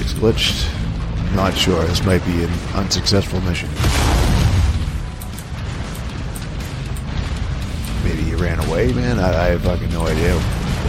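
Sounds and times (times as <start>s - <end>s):
crackling rumble of a building being destroyed in a video game: 0.0s - 10.8s
speech: 0.2s - 4.2s, 8.8s - 10.8s
explosions destroying a building in a video game: 3.8s - 5.0s.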